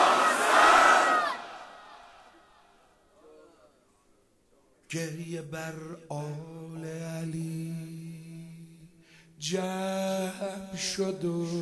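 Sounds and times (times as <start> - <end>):
large crowd shouting a chant in unison: 0.0 - 2.5
speech: 4.9 - 7.9, 9.4 - 11.6.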